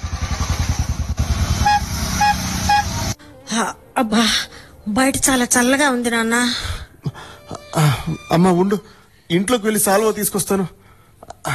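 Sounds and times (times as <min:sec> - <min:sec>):
auto rickshaw small engine putting: 0:00.0 - 0:03.2
auto rickshaw horn toots: 0:01.2 - 0:03.2
speech: 0:03.6 - 0:07.2, 0:07.8 - 0:10.8.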